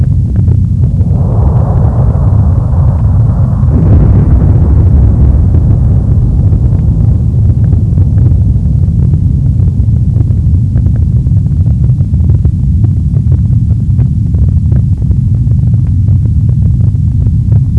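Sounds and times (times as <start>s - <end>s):
flames: 0.0s - 12.3s
rumble: 0.0s - 17.7s
explosions: 0.8s - 10.6s.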